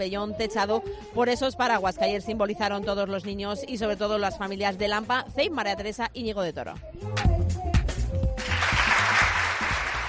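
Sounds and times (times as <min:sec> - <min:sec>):
speech: 0:00.0 - 0:07.6
applause: 0:08.4 - 0:10.0.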